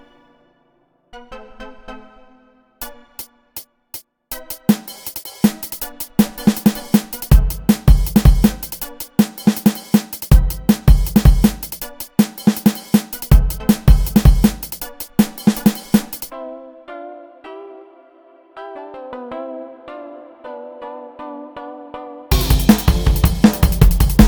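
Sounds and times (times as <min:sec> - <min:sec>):
instrumental music: 0:04.3 - 0:16.3, 0:22.3 - 0:24.2.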